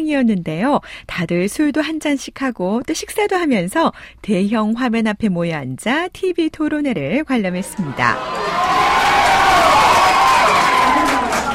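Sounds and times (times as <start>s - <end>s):
speech: 0.0s - 8.9s
restaurant crowd cheering: 7.6s - 11.5s
restaurant crowd applauding: 8.1s - 11.5s.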